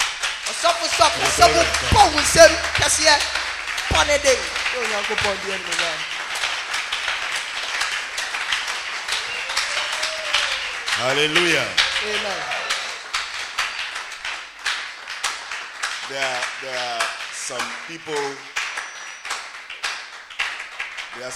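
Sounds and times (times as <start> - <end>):
audience clapping: 0.0 - 21.3
laughter: 0.5 - 6.0, 9.2 - 13.1
speech: 0.5 - 6.1, 11.0 - 12.6, 16.1 - 18.5, 21.2 - 21.3.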